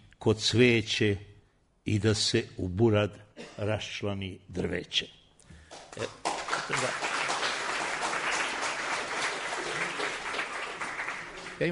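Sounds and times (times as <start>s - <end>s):
speech: 0.2s - 5.2s, 6.0s - 7.1s
audience applause after a short poem is recited: 6.0s - 11.7s.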